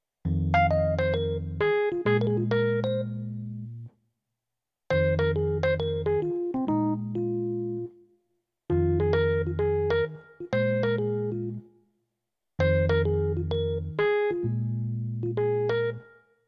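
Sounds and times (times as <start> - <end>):
jazz piano: 0.3 - 3.9, 4.9 - 7.9, 8.7 - 11.6, 12.6 - 16.0.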